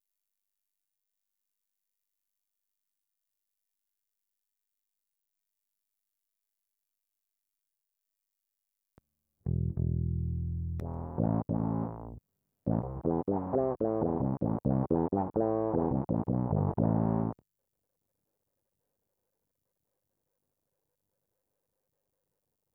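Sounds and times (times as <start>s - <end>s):
bass guitar recorded by direct input: 9.5s - 17.4s.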